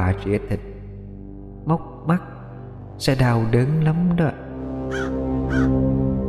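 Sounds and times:
speech: 0:00.1 - 0:00.7, 0:01.6 - 0:02.4, 0:03.0 - 0:06.2
crows squabbling and cawing: 0:04.9 - 0:05.8.

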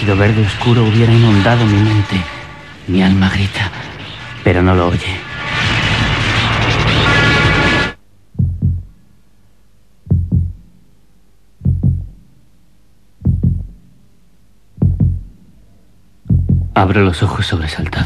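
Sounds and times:
speech: 0:00.0 - 0:05.3, 0:16.8 - 0:18.0
loud dense noise burst: 0:00.0 - 0:08.0
rapid heartbeat thumps: 0:08.3 - 0:09.0, 0:10.0 - 0:10.8, 0:11.6 - 0:12.3, 0:13.2 - 0:14.0, 0:14.7 - 0:15.5, 0:16.2 - 0:16.8.

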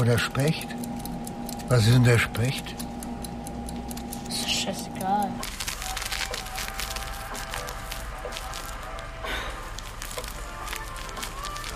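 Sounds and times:
speech: 0:00.0 - 0:01.0, 0:01.7 - 0:02.9, 0:04.7 - 0:05.5
candy wrappers crinkling: 0:05.4 - 0:11.7.

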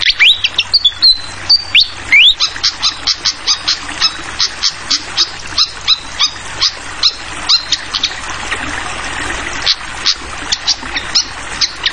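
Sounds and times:
flycatcher singing: 0:00.0 - 0:08.1
soft rush of water: 0:00.0 - 0:11.9.

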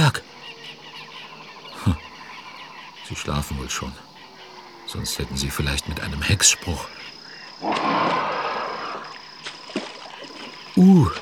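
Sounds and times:
speech: 0:00.1 - 0:00.3, 0:01.8 - 0:02.0, 0:03.1 - 0:04.1, 0:04.9 - 0:08.2, 0:10.8 - 0:11.1
churning splashing water as a black rhinoceros stomps out: 0:07.7 - 0:11.1.

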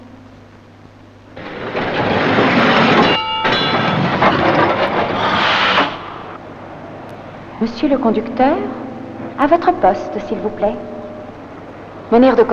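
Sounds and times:
metro train starting and running: 0:00.0 - 0:12.5
speech: 0:07.6 - 0:10.9, 0:12.1 - 0:12.5.

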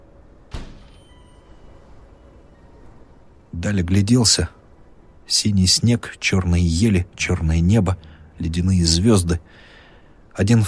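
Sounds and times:
door closing: 0:00.4 - 0:02.0
speech: 0:03.6 - 0:04.6, 0:05.3 - 0:09.7, 0:10.4 - 0:10.6.

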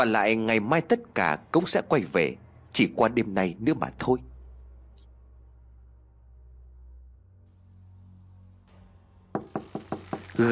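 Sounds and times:
speech: 0:00.0 - 0:04.3, 0:10.4 - 0:10.5
low steady rumble: 0:00.0 - 0:09.4
sharp knocks on a room door near midnight: 0:09.3 - 0:10.4.

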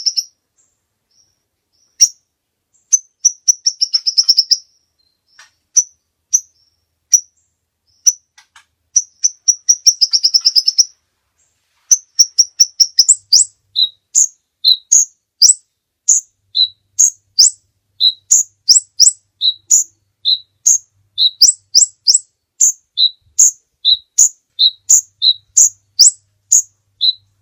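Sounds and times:
bird giving buzzy chattering bursts: 0:00.0 - 0:00.3, 0:02.8 - 0:04.7, 0:09.0 - 0:11.0, 0:11.9 - 0:27.3.

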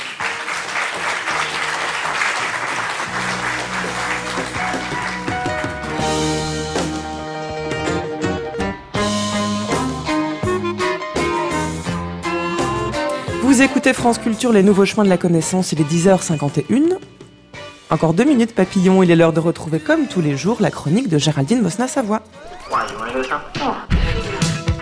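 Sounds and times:
audience applause for speakers at a public talk in Lille: 0:00.0 - 0:06.3
music playing: 0:00.0 - 0:24.8
speech: 0:13.7 - 0:17.2, 0:17.9 - 0:24.2.

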